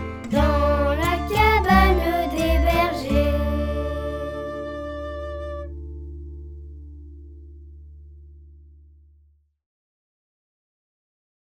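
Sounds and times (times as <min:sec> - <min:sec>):
person singing a French song: 0:00.0 - 0:05.7.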